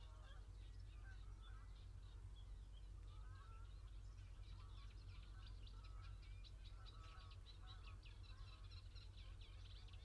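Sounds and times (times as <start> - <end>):
early morning countryside birdsong: 0.0 - 10.0.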